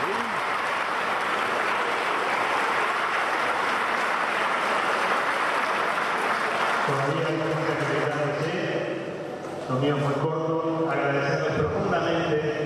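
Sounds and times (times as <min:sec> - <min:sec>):
crowd applauding at a neighborhood community meeting: 0:00.0 - 0:08.4
speech: 0:06.9 - 0:08.9, 0:09.7 - 0:12.6.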